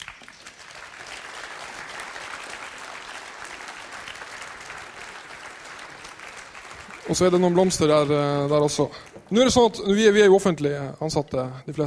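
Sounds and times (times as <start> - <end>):
audience applause: 0.0 - 9.3
speech: 7.1 - 11.8.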